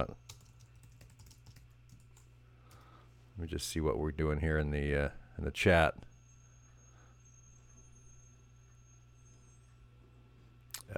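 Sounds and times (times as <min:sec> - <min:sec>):
speech: 0:00.0 - 0:00.2, 0:03.4 - 0:06.1
typing a chat message on a computer keyboard: 0:00.0 - 0:02.8.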